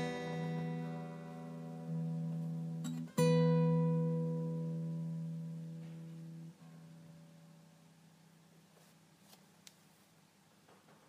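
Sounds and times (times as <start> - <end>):
instrumental music: 0.0 - 7.5.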